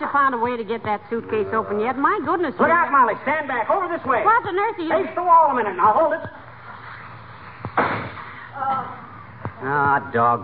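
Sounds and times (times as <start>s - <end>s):
speech: 0.1s - 6.4s, 9.6s - 10.4s
firecracker exploding: 7.7s - 8.3s.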